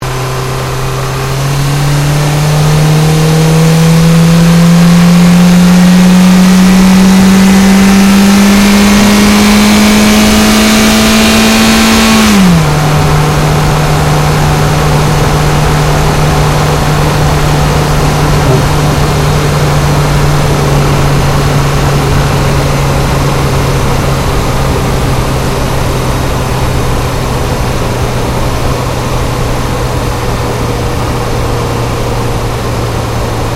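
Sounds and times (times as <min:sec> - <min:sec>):
Ford Focus engine accelerating and changing gear heard from the engine bay: 0:00.0 - 0:33.5.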